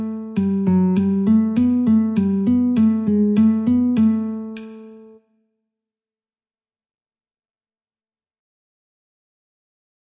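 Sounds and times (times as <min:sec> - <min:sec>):
guitar metronome at 50: 0:00.0 - 0:05.2.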